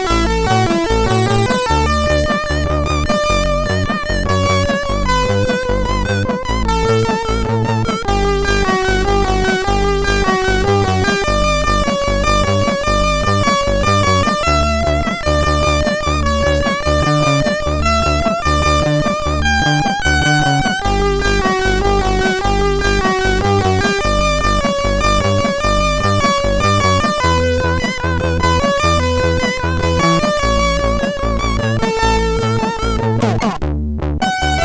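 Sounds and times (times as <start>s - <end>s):
rock chiptune music on MOS6581R4 sound chip: 0.0s - 34.6s.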